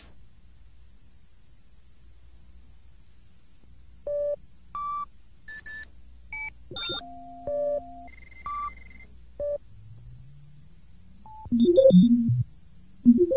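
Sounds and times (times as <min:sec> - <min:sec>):
beep: 0:04.1 - 0:09.6, 0:11.3 - 0:12.5, 0:13.1 - 0:13.3.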